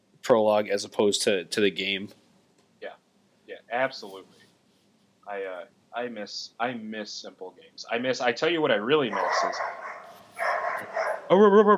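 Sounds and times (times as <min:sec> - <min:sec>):
speech: 0:00.3 - 0:02.2, 0:03.7 - 0:04.4, 0:05.3 - 0:10.0, 0:11.3 - 0:11.7
dogs barking in a hallway: 0:09.1 - 0:11.4.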